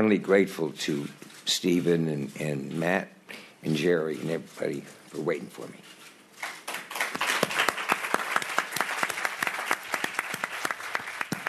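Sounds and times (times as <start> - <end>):
speech: 0.0 - 6.0
applause at a press conference in Cannes: 6.4 - 11.4.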